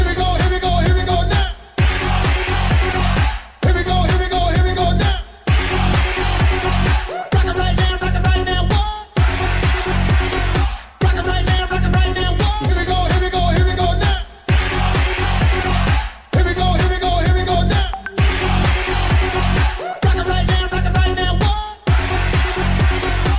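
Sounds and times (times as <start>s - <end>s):
music: 0.0s - 23.3s.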